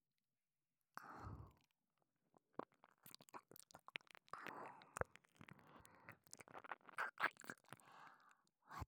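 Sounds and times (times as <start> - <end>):
ear licking practice: 2.5 - 8.3.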